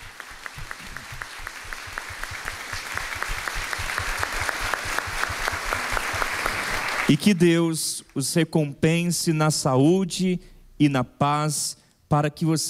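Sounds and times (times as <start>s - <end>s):
warm round of applause: 0.0s - 7.6s
speech: 7.1s - 12.6s.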